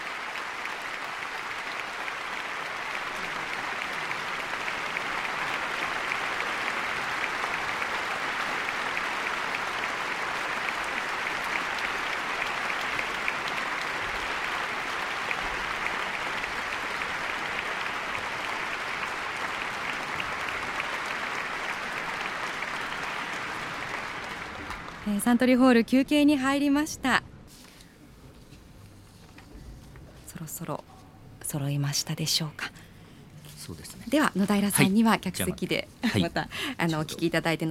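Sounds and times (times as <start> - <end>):
concert hall audience applauding: 0.0 - 25.3
speech: 25.1 - 27.2, 31.5 - 32.7, 33.7 - 37.7.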